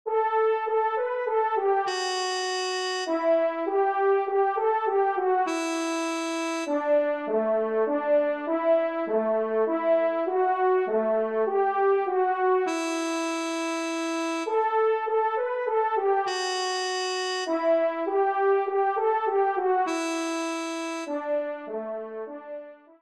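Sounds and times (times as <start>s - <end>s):
trumpet minuet in C major: 0.1s - 23.0s.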